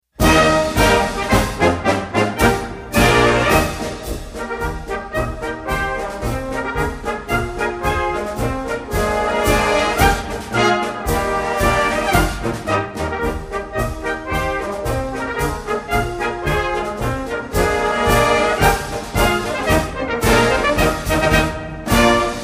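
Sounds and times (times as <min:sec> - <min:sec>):
march music: 0:00.1 - 0:22.4.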